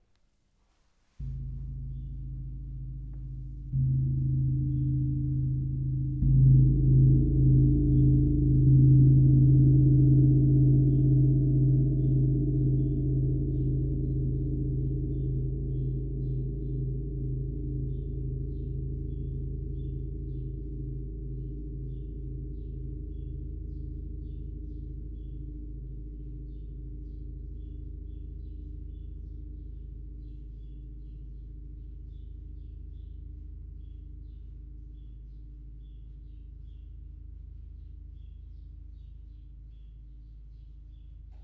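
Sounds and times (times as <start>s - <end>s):
gong: 1.2s - 30.3s.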